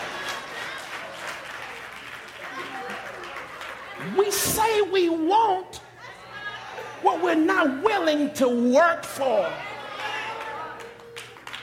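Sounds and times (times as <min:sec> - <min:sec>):
audience clapping: 0:00.0 - 0:04.7, 0:09.9 - 0:11.6
faint crowd voices: 0:00.0 - 0:11.6
speech: 0:04.0 - 0:05.8, 0:07.0 - 0:09.7.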